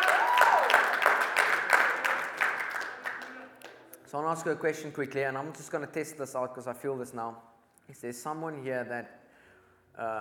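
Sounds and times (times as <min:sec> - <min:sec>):
crowd clapping: 0:00.0 - 0:04.0
speech: 0:04.1 - 0:09.2, 0:10.0 - 0:10.1.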